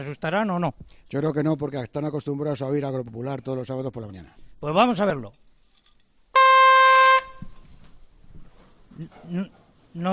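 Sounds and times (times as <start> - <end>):
speech: 0.0 - 5.5, 9.0 - 10.1
whistle blown at a pig farm: 6.4 - 7.6.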